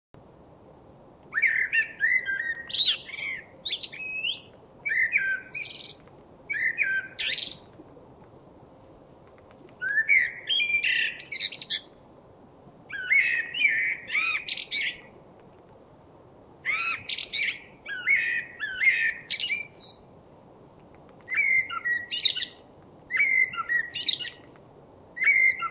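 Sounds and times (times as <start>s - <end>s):
Common blackbird singing: 1.3s - 7.7s, 9.8s - 11.9s, 12.9s - 15.1s, 16.6s - 20.0s, 21.3s - 24.4s, 25.2s - 25.7s.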